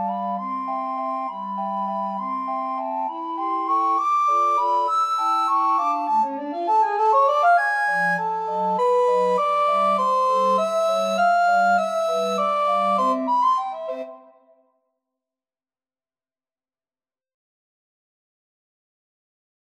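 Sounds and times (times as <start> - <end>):
recorder quartet playing a waltz: 0.0 - 14.2.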